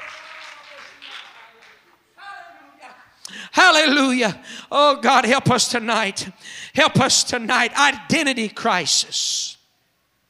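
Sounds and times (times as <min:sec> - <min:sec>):
audience clapping hands in praise: 0:00.0 - 0:02.0
speech: 0:03.5 - 0:09.5.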